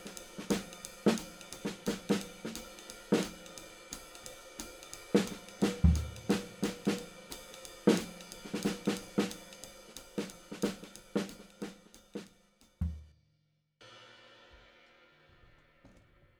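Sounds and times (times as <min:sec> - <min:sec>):
Yamaha 55x14 brass snare drum: 0:00.0 - 0:13.1.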